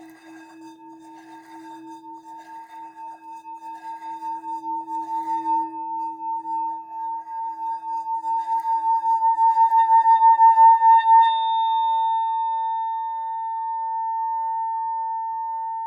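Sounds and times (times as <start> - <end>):
deep hammered seven-metal Tibetan singing bowl E flat note: 7.6 - 15.8.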